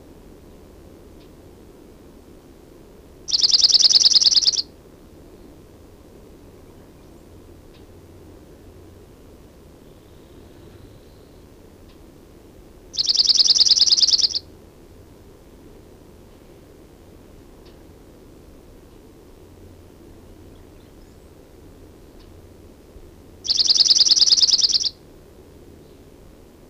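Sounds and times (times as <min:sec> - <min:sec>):
Chipping Sparrow singing a rapid level trill of dry chips: 0:03.3 - 0:04.7, 0:12.9 - 0:14.5, 0:23.4 - 0:25.0.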